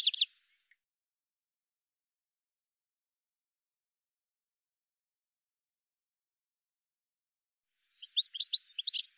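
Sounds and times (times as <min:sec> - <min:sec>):
high sharp bird chirps: 0:00.0 - 0:00.4, 0:08.0 - 0:09.1.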